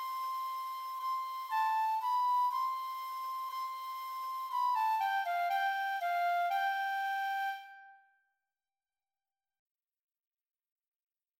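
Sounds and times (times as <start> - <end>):
second flute of a Spielmannszug marching band: 0.0 - 8.0.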